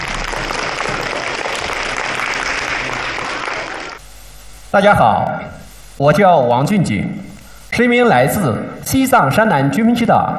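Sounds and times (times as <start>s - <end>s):
large crowd applauding warmly: 0.0s - 4.0s
speech: 4.7s - 5.4s, 6.0s - 10.3s.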